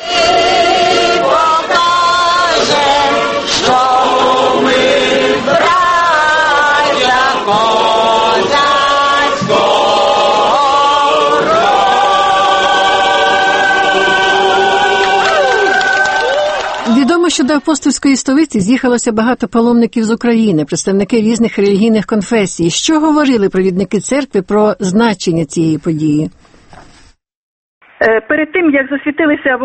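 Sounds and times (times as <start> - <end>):
crowd singing an anthem: 0.0 - 16.2
speech: 17.4 - 26.8, 28.0 - 29.6.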